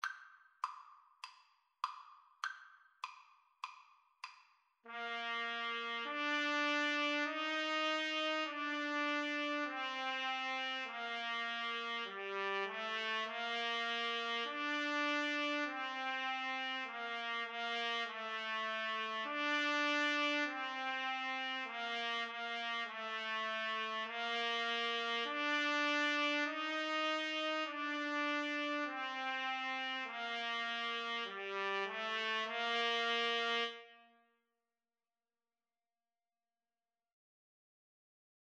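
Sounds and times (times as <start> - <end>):
trumpet duet: 4.9 - 34.2.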